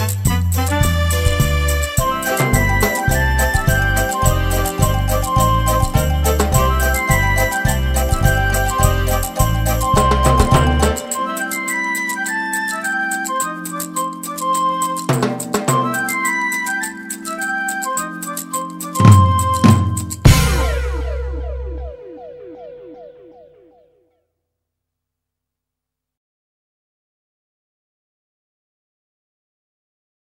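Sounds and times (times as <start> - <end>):
salsa music: 0.0 - 23.2.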